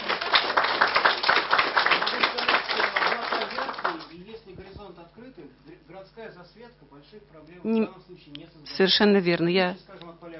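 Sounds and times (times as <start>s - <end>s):
audience applause: 0.0s - 4.1s
speech: 6.2s - 10.3s.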